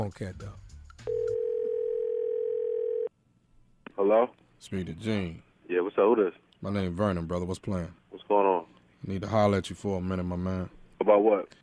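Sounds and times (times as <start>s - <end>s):
speech: 0.0s - 0.6s, 4.0s - 11.6s
telephone dial tone: 1.1s - 3.1s.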